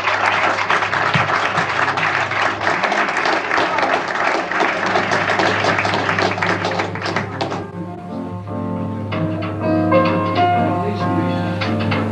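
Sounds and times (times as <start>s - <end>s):
audience applause: 0.0s - 7.8s
music: 4.5s - 12.1s.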